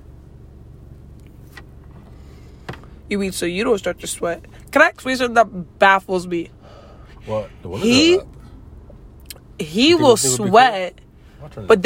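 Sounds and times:
car engine idling for air conditioning: 0.0 - 11.8
speech: 3.1 - 6.6, 7.2 - 8.3, 9.6 - 11.8.

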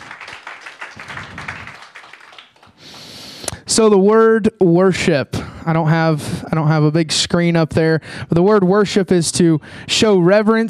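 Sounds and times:
audience clapping hands: 0.0 - 3.3
speech: 3.8 - 10.6.

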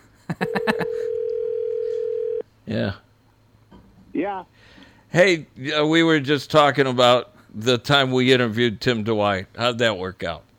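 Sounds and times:
telephone dial tone: 0.6 - 2.4
speech: 2.7 - 3.0, 4.2 - 10.5.

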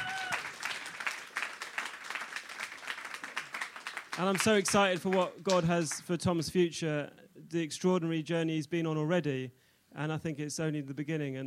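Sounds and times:
audience applause: 0.0 - 5.7
speech: 4.2 - 11.4.

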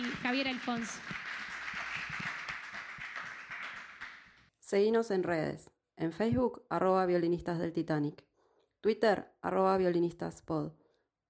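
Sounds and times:
crowd applauding: 0.0 - 4.5
speech: 0.2 - 1.2, 4.7 - 10.8.

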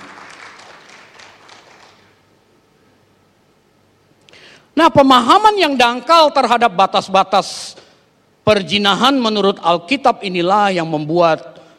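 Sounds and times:
audience applause: 0.0 - 2.2
speech: 4.8 - 7.8, 8.5 - 11.5.

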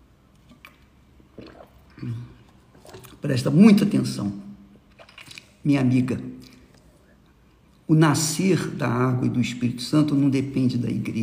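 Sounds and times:
person sipping water: 0.3 - 3.2, 6.4 - 7.9
soft low gulp: 0.5 - 3.2
speech: 2.0 - 2.4, 3.2 - 4.4, 5.6 - 6.5, 7.9 - 11.2.

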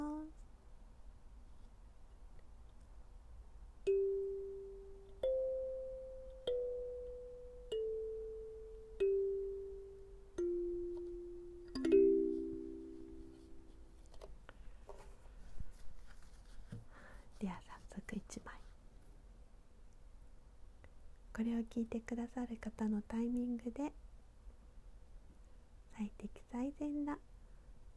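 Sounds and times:
kalimba tones: 3.9 - 13.9
speech: 21.4 - 24.0, 26.8 - 27.3.

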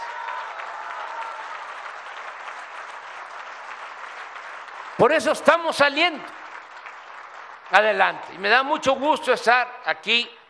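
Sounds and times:
audience applause: 0.0 - 8.4
speech: 5.0 - 6.4, 7.7 - 10.4.

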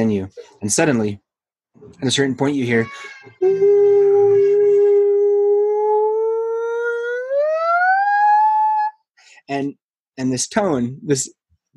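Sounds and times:
speech: 0.0 - 1.2, 1.8 - 4.5, 9.5 - 11.7
child screaming: 2.7 - 9.0.

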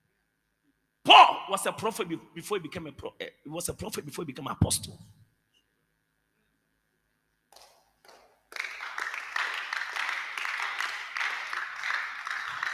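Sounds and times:
speech: 1.5 - 5.2
audience clapping: 7.5 - 12.7.

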